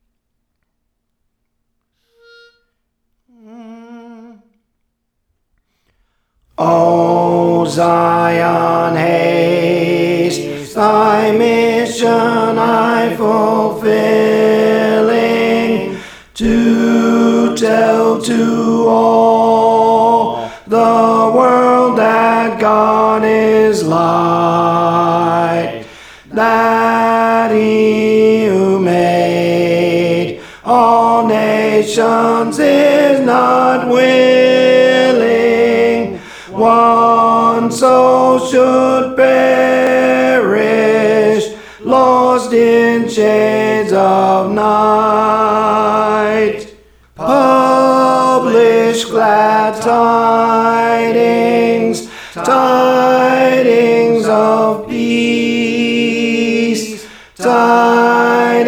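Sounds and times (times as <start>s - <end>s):
tenor singing songs: 6.6s - 58.6s.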